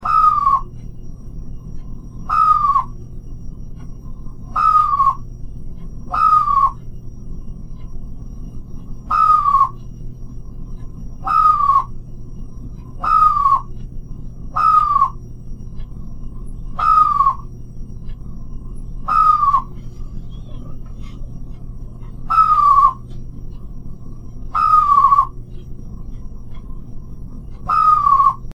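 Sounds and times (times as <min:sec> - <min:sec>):
chirp: 0:00.0 - 0:00.8, 0:01.8 - 0:03.0, 0:04.0 - 0:05.3, 0:06.0 - 0:07.0, 0:08.5 - 0:12.1, 0:12.8 - 0:23.2, 0:24.3 - 0:26.8, 0:27.6 - 0:28.5.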